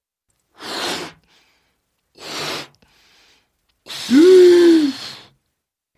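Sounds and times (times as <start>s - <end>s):
voice imitating frog puffing up with air: 3.9s - 5.1s.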